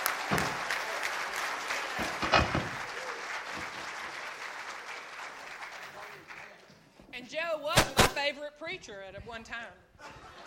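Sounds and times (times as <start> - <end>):
congregation applause at Hiram First Baptist Church: 0.0 - 6.7
speech: 7.3 - 10.4
laughter: 10.0 - 10.4.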